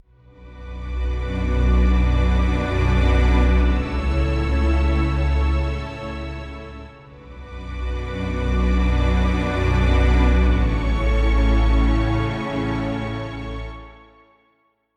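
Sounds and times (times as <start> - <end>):
hopeful short orchestral strings phrase: 0.2 - 14.4.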